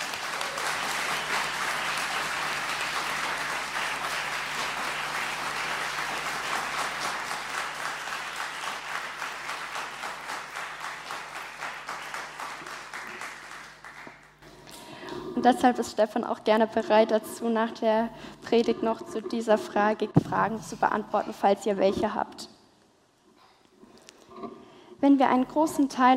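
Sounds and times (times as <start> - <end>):
audience applause: 0.0 - 14.4
speech: 15.4 - 22.5, 25.0 - 26.1.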